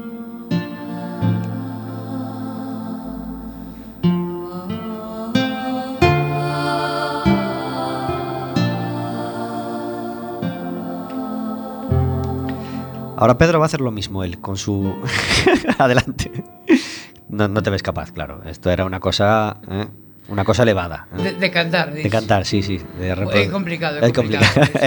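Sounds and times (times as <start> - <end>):
instrumental background music: 0.0 - 15.5, 21.2 - 24.7
speech: 13.2 - 24.8
laughter: 14.9 - 16.9, 22.1 - 24.8.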